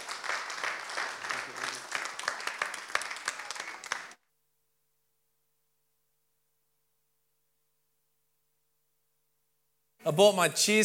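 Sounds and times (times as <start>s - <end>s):
crowd applause welcoming a speaker: 0.0s - 4.2s
speech: 10.1s - 10.8s.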